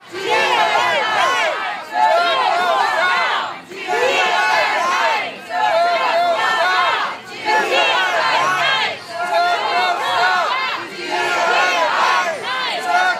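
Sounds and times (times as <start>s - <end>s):
protest crowd at demonstration against circus animals: 0.0s - 13.1s.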